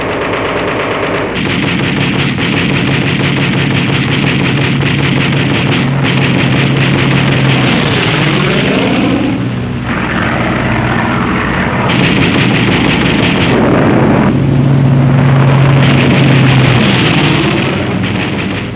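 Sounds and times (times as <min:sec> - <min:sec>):
anti-aircraft fire: 0:00.0 - 0:18.7.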